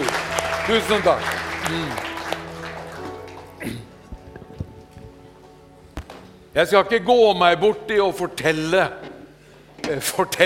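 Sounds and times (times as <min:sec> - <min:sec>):
audience applause: 0:00.0 - 0:04.9
speech: 0:00.7 - 0:02.0, 0:06.6 - 0:09.1, 0:09.9 - 0:10.4.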